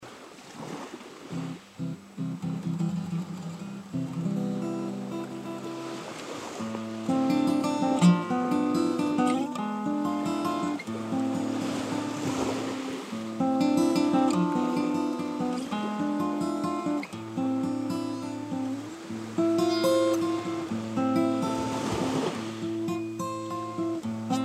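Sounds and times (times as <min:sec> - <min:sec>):
guitar: 0:01.3 - 0:24.4.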